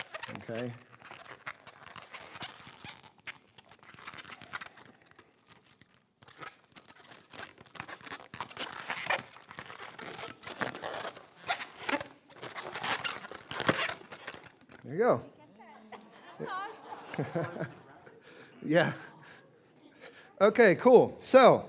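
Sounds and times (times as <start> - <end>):
balloon animal being twisted: 0.0 - 14.9
speech: 0.5 - 0.9, 14.9 - 15.4, 17.2 - 17.8, 18.6 - 19.1, 20.4 - 21.6
laughter: 15.7 - 19.4.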